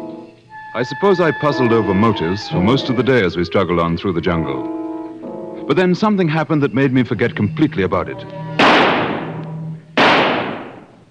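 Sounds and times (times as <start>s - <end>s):
speech: 0.7s - 4.8s, 5.7s - 8.4s
burst of noise: 8.5s - 9.4s, 10.0s - 11.0s
gunshot fired at an antelope during a hunt in the jungle: 8.6s - 9.4s, 10.0s - 11.0s.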